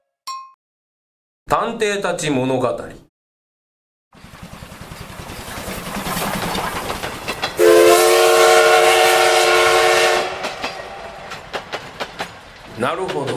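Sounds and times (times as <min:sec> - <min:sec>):
speech: 0:01.5 - 0:03.1, 0:12.8 - 0:13.3
sleeper express train running: 0:04.2 - 0:13.3.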